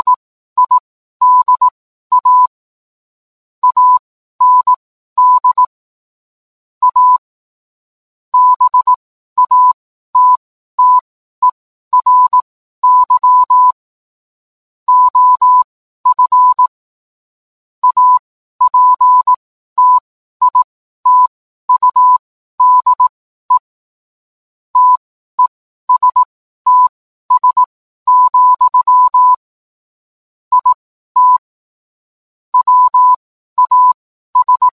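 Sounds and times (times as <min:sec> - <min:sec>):
morse code beeps: 0:00.0 - 0:02.5, 0:03.6 - 0:05.7, 0:06.8 - 0:07.2, 0:08.4 - 0:13.8, 0:14.9 - 0:16.7, 0:17.8 - 0:23.7, 0:24.8 - 0:29.5, 0:30.5 - 0:31.5, 0:32.6 - 0:34.7.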